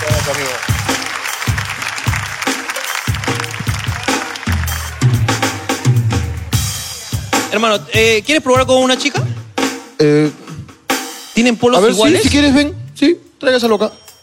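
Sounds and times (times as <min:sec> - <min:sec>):
audience applause: 0:00.0 - 0:06.8
speech: 0:00.3 - 0:00.7, 0:07.6 - 0:09.3, 0:10.0 - 0:10.4, 0:11.4 - 0:14.0.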